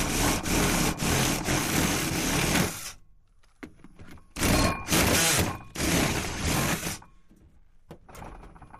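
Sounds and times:
hand machine drill drilling: 0.0s - 3.0s, 4.4s - 7.1s.

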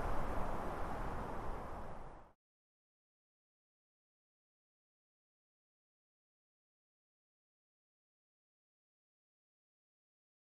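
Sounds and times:
mountain wind in pine trees: 0.0s - 2.4s.

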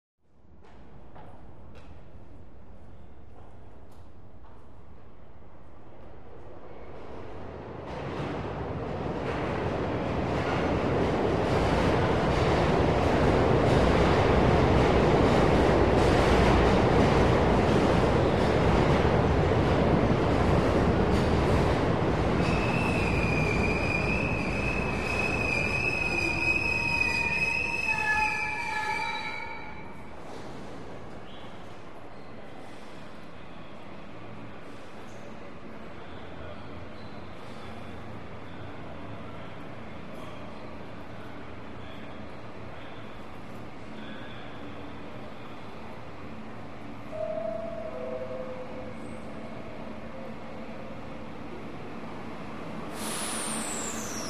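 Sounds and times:
subway train arriving at platform: 0.3s - 54.2s.

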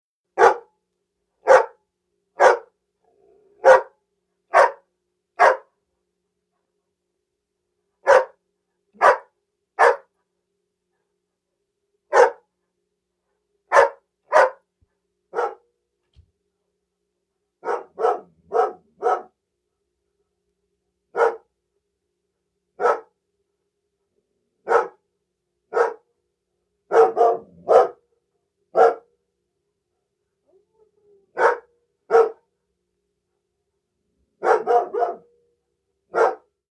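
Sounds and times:
large dog barking: 0.4s - 0.7s, 1.4s - 1.8s, 2.4s - 2.7s, 3.5s - 5.7s, 8.0s - 8.4s, 9.0s - 10.1s, 12.1s - 12.4s, 13.7s - 14.7s, 15.3s - 15.7s, 17.6s - 19.4s, 21.1s - 21.5s, 22.8s - 23.2s, 24.6s - 25.0s, 25.7s - 26.1s, 26.9s - 28.0s, 28.7s - 29.1s, 31.4s - 32.4s, 34.4s - 35.3s, 36.1s - 36.5s.

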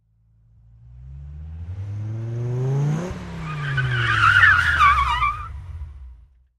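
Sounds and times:
sports car accelerating quickly: 0.3s - 6.4s.

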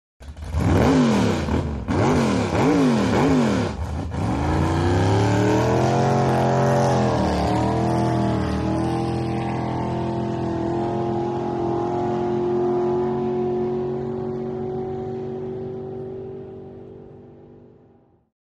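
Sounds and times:
drag boat engine starting and revving: 0.2s - 17.7s.

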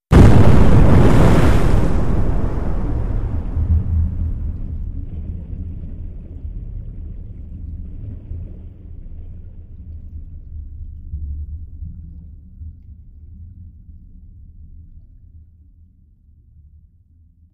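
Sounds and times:
underwater explosions: 0.0s - 8.7s.

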